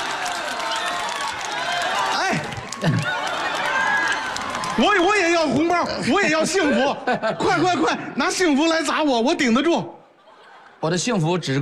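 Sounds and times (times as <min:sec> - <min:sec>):
live audience clapping and cheering: 0:00.0 - 0:06.3
laughter: 0:02.0 - 0:04.2, 0:05.8 - 0:09.0, 0:10.0 - 0:11.1
speech: 0:02.8 - 0:03.1, 0:04.8 - 0:10.0, 0:10.8 - 0:11.6.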